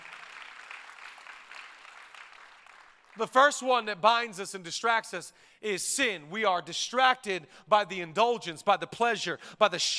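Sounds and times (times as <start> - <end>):
audience clapping: 0.0 - 3.6
speech: 3.2 - 9.9.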